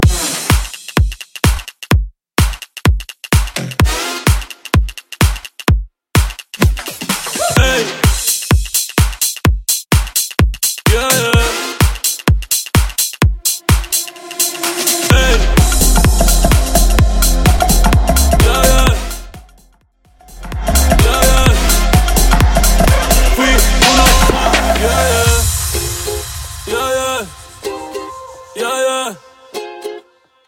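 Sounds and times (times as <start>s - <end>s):
mainstream Latin future house mash-up mix: 0.0s - 30.0s.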